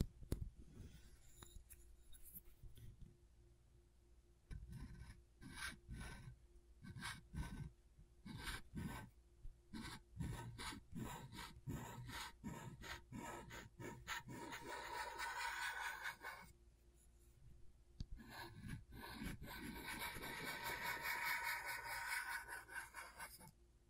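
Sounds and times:
low steady hum: 0.1s - 23.8s
tool scratching a scratchboard: 4.5s - 6.3s, 6.9s - 7.7s, 8.3s - 9.1s, 9.7s - 16.5s, 18.2s - 23.5s.

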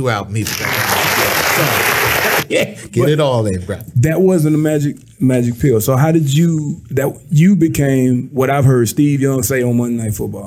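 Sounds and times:
speech: 0.0s - 10.4s
crowd applause sound effect: 0.5s - 2.5s.

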